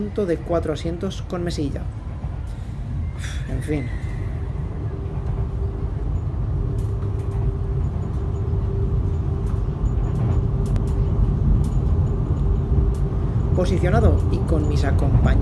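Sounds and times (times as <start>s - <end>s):
speech: 0.0s - 2.6s, 3.2s - 4.2s, 13.6s - 15.4s
train travelling out of the 28.4 km Guadarrama rail tunnel: 0.0s - 15.4s
light clicks and rattles: 5.1s - 15.4s.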